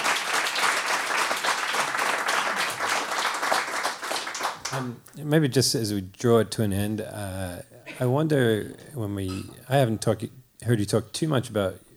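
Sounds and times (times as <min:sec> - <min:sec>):
audience applause: 0:00.0 - 0:04.9
speech: 0:04.7 - 0:11.8.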